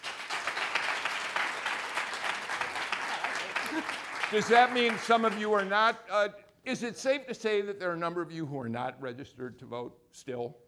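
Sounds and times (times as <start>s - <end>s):
student audience clapping: 0.0s - 6.0s
speech: 3.8s - 10.6s.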